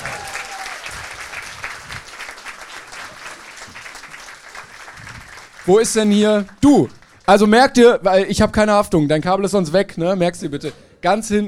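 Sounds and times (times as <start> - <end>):
audience applause: 0.0 - 7.3
speech: 5.7 - 11.4.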